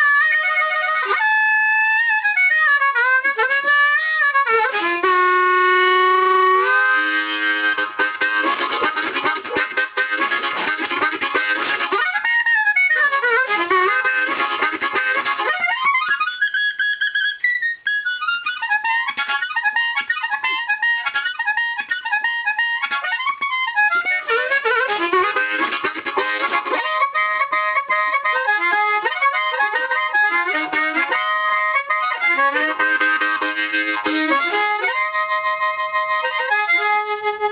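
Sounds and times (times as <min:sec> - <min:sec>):
harmonica: 0:00.0 - 0:37.4.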